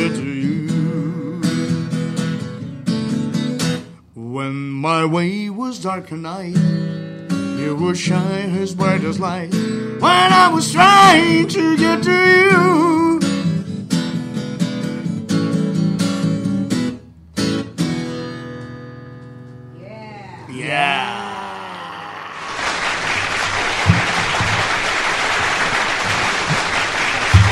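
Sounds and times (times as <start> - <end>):
music: 0.0 - 20.4
speech: 4.8 - 13.0
studio audience applause at the Dinâmica FM radio station: 20.7 - 27.5.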